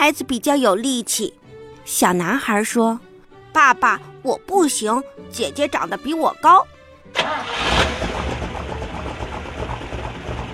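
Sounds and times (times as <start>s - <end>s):
speech: 0.0s - 8.1s
car engine starting and driving off: 7.1s - 10.5s.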